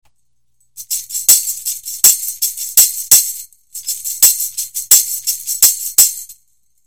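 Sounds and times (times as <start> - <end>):
tambourine: 0.6 - 6.8.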